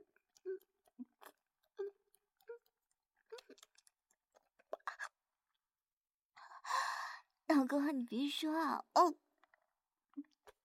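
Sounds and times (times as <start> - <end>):
wet mouth sounds of someone eating an ice pop: 0.0 - 5.2, 9.4 - 10.6
speech: 7.6 - 9.2.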